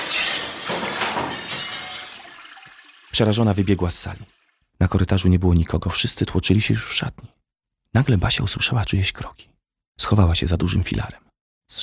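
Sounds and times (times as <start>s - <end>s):
glass shards clattering: 0.0s - 3.0s
glass aquarium crashing to the floor and shattering: 0.0s - 3.1s
speech: 3.1s - 11.8s.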